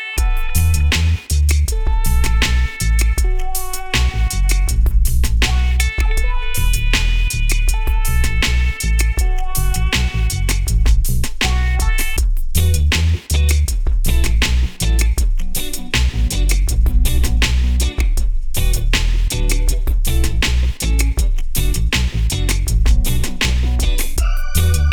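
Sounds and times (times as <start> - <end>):
reggae music: 0.2 - 24.9.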